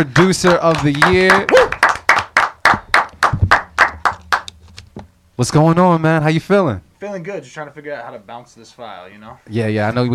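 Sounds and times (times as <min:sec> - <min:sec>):
speech: 0:00.0 - 0:01.8, 0:05.4 - 0:10.1
audience clapping: 0:00.0 - 0:04.6.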